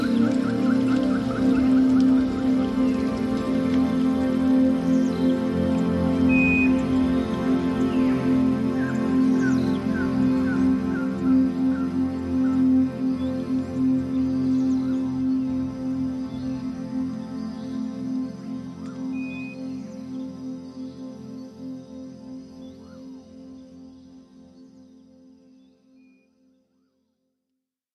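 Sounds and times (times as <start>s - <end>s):
rain in a garden: 0.0s - 18.1s
Zen music: 0.0s - 26.6s.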